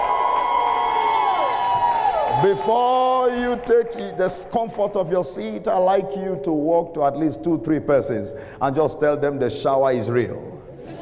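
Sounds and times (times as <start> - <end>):
high sustained whoop from a church congregation: 0.0 - 2.7
church congregation cheering during a service: 0.0 - 4.6
speech: 2.4 - 10.5.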